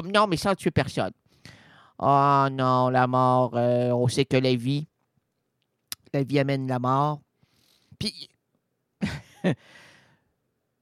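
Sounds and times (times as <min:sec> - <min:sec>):
speech: 0:00.0 - 0:04.9, 0:06.1 - 0:07.2, 0:08.0 - 0:08.3, 0:09.0 - 0:09.8
loud breathing through the nose: 0:01.3 - 0:02.0, 0:07.4 - 0:08.0, 0:09.6 - 0:10.3.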